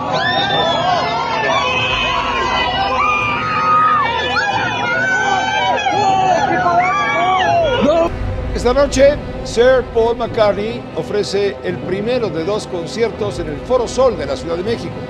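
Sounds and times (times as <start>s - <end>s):
dense crowd of fans cheering outside a hotel in Mexico City: 0.0s - 8.1s
speech: 8.6s - 15.0s.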